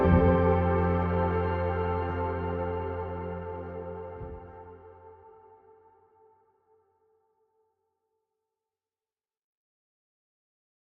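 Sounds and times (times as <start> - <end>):
guitar: 0.0 - 6.0.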